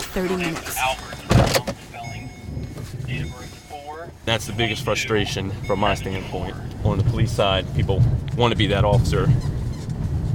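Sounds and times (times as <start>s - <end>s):
police squad car mechanical whirring and rustling: 0.0s - 10.3s
speech: 0.2s - 2.4s, 3.1s - 9.6s
police squad car door thump: 1.2s - 1.8s.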